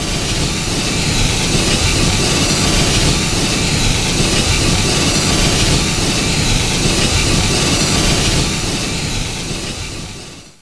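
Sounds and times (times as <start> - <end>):
steam hissing: 0.0 - 10.5.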